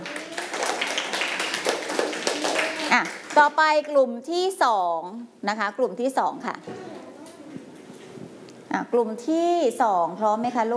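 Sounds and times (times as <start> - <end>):
classroom clapping for a group: 0.0 - 3.9
speech: 3.0 - 6.9, 8.8 - 10.7.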